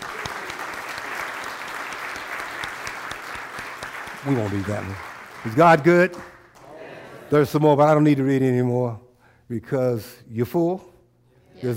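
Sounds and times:
audience hand clapping: 0:00.0 - 0:06.8
speech: 0:04.2 - 0:06.3, 0:07.3 - 0:10.9.

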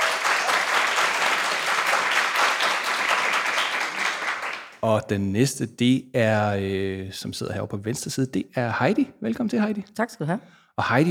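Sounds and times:
audience applause welcoming a guest: 0:00.0 - 0:04.8
speech: 0:04.8 - 0:11.0.

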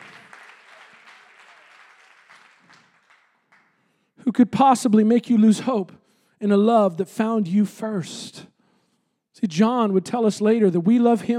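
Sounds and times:
audience clapping hands: 0:00.0 - 0:04.0
speech: 0:04.3 - 0:08.5, 0:09.4 - 0:11.3.

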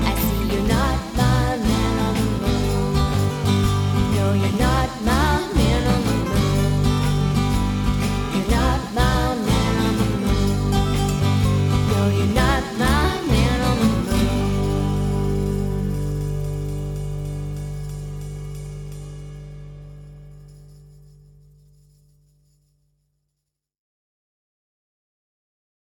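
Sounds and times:
drums: 0:00.0 - 0:19.9.

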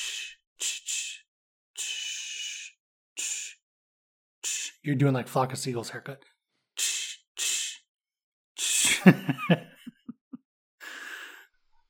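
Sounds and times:
voice imitating hairspray being sprayed: 0:00.0 - 0:03.6, 0:04.4 - 0:04.8, 0:06.8 - 0:07.8, 0:08.6 - 0:09.1
speech: 0:04.8 - 0:06.4, 0:09.0 - 0:09.8
laughter: 0:08.8 - 0:10.4.

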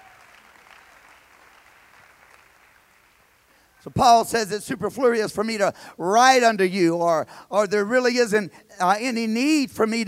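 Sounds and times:
audience applause: 0:00.0 - 0:03.4
speech: 0:03.8 - 0:10.0.

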